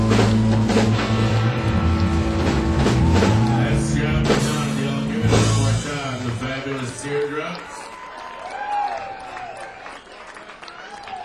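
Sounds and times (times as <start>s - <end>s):
audience clapping: 0.0s - 11.2s.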